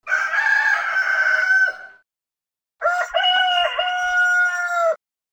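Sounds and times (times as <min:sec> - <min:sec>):
rooster crowing: 0:00.0 - 0:02.0, 0:02.8 - 0:05.0.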